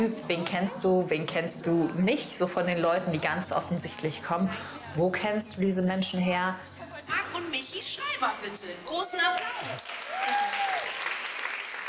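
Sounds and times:
speech: 0.0s - 6.7s, 7.4s - 10.6s
scattered cheers and voices: 7.8s - 11.0s
audience applause: 9.2s - 11.8s.

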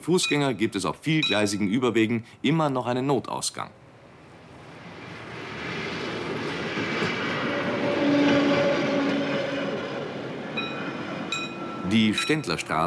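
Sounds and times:
speech: 0.0s - 3.8s, 11.9s - 12.8s
train rumbling past a level crossing: 3.8s - 12.8s
train wheels whining metallic tones: 4.1s - 12.8s.

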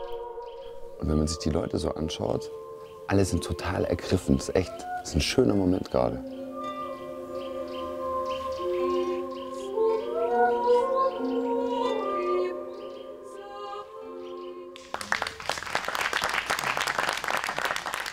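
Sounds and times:
faint birds chirping and twittering: 0.0s - 15.4s
slow sustained instrumental music: 0.0s - 15.7s
speech: 1.0s - 6.4s
loud dense applause: 14.8s - 18.1s.

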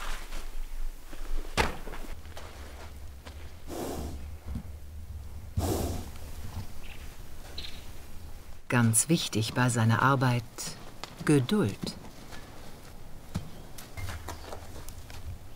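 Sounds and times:
steady low rumble: 2.2s - 8.7s
wild stallion snorting: 3.6s - 4.7s, 5.5s - 6.7s
speech: 8.7s - 12.0s.

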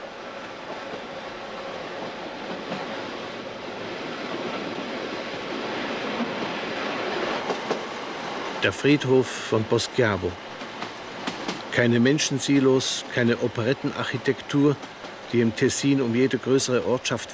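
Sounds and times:
railway carriage rolling on rails: 0.0s - 17.3s
speech: 8.6s - 10.5s, 11.8s - 17.3s.

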